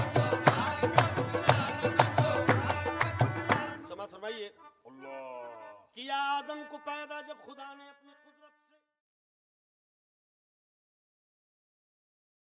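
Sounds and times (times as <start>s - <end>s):
Sufi devotional singing: 0.0s - 8.6s.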